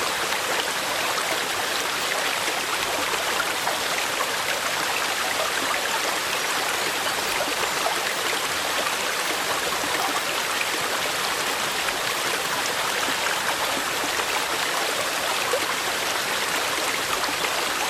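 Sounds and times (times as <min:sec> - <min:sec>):
mountain stream flowing: 0:00.0 - 0:17.8.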